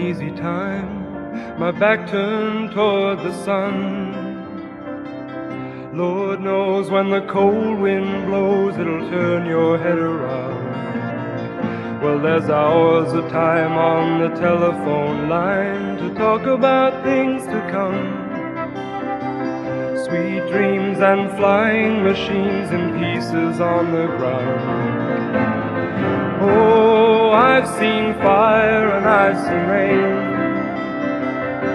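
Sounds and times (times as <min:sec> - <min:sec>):
vocals: 0:00.0 - 0:04.8, 0:05.4 - 0:31.7
flute: 0:12.0 - 0:24.6, 0:25.8 - 0:31.7.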